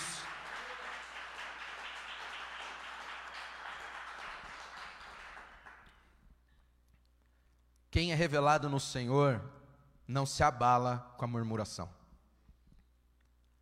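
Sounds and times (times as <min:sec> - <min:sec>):
audience applause: 0:00.0 - 0:05.9
speech: 0:08.0 - 0:12.0.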